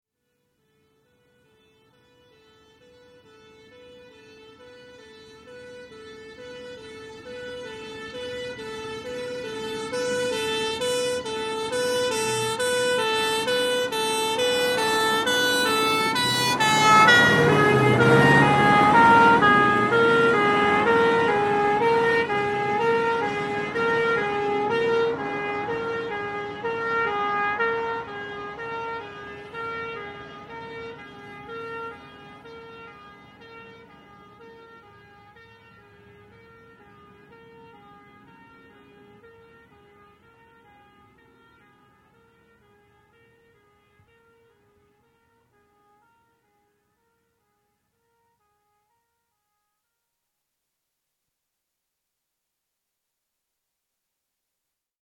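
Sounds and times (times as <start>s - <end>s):
fire engine two-tone horns: 0.6s - 36.8s
fire engine passing with revving engine: 5.4s - 32.4s.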